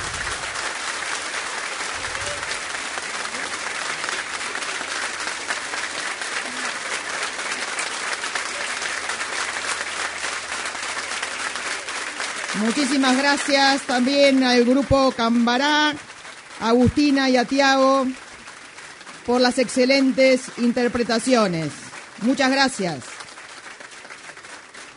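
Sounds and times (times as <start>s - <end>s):
loud audience applause: 0.0s - 24.9s
speech: 12.6s - 18.2s, 19.2s - 23.1s.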